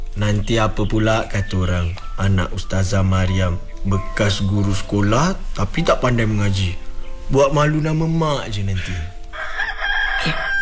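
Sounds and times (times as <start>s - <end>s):
speech: 0.2s - 9.1s, 10.2s - 10.4s
rooster crowing: 9.3s - 10.6s.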